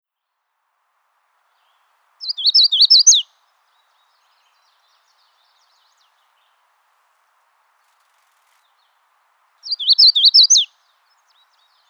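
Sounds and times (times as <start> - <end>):
magnolia warbler song: 1.4 - 6.9, 7.8 - 11.8.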